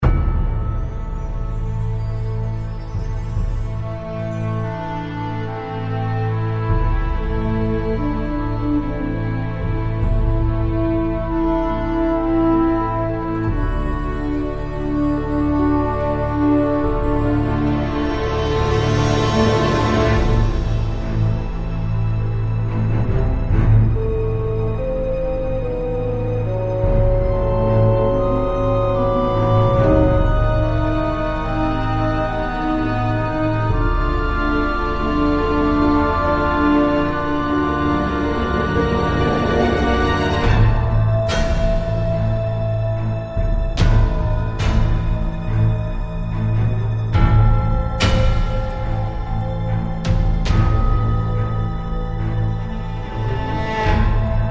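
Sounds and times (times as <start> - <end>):
pre-battle background music: 0.0 - 54.5.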